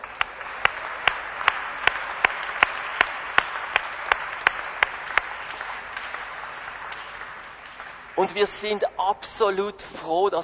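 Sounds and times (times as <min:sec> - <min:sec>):
crowd applauding warmly: 0:00.0 - 0:09.7
speech: 0:08.2 - 0:10.4.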